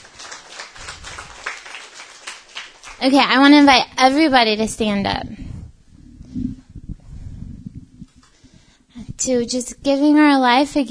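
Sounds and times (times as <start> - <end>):
crowd clapping: 0.0 - 3.4
speech: 3.0 - 5.4, 9.3 - 10.8.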